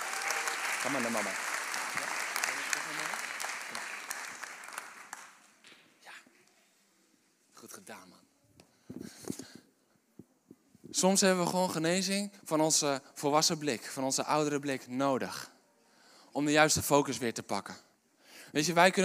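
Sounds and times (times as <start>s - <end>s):
audience applause: 0.0s - 5.7s
speech: 0.8s - 1.5s, 7.9s - 8.3s, 11.0s - 15.5s, 16.4s - 17.9s, 18.5s - 19.0s.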